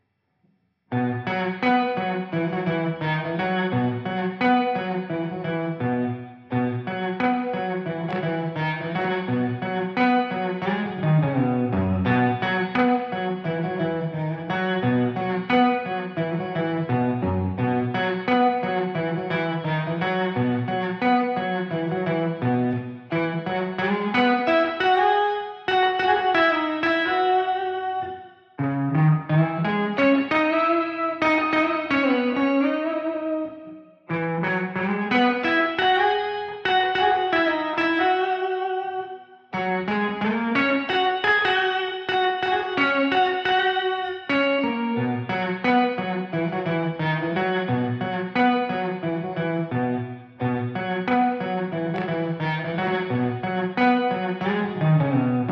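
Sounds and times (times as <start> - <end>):
guitar: 0.9 - 55.5.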